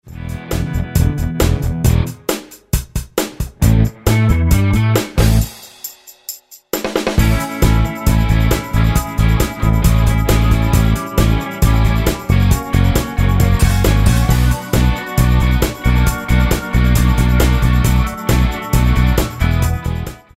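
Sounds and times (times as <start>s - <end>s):
funky cha-cha music: 0.1s - 20.3s.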